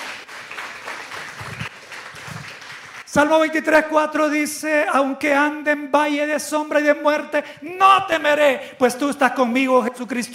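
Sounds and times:
audience clapping at a Spanish-language religious sermon: 0.0 - 3.3
speech: 3.1 - 10.3.

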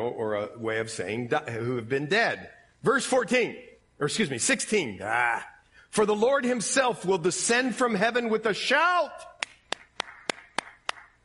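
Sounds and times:
speech: 0.1 - 9.3
hand clapping: 9.4 - 11.2.

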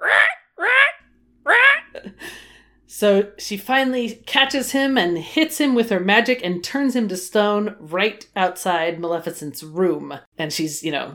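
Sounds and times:
voice imitating crow caws: 0.0 - 2.0
speech: 2.9 - 11.1.

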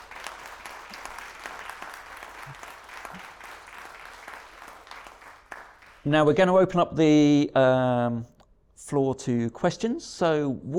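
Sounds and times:
audience round of applause: 0.0 - 6.1
speech: 6.0 - 8.3, 8.9 - 10.7.

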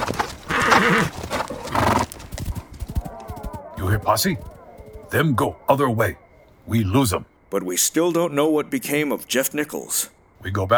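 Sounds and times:
hooves clopping: 0.0 - 2.5
horse Silver whinnying in a Lone Ranger radio drama: 0.4 - 2.4
speech: 0.8 - 1.2, 4.0 - 4.5, 5.1 - 10.7.

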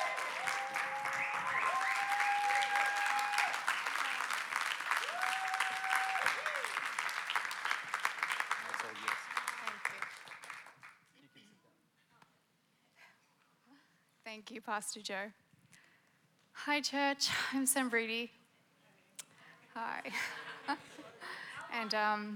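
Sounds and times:
church congregation applauding a guest speaker: 0.0 - 11.0
speech: 14.6 - 15.4, 16.7 - 18.4, 19.8 - 21.0, 21.8 - 22.3.

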